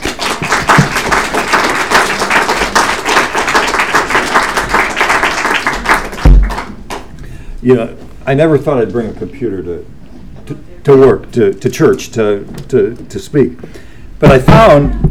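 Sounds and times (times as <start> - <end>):
church congregation applauding to welcome a speaker: 0.0 - 7.2
speech: 7.6 - 15.0.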